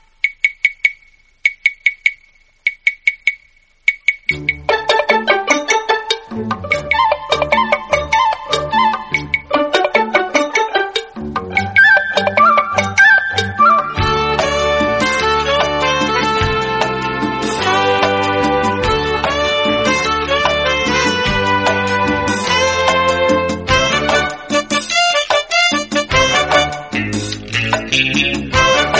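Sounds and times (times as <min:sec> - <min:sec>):
Telugu background music ringtone: 0:00.0 - 0:28.9.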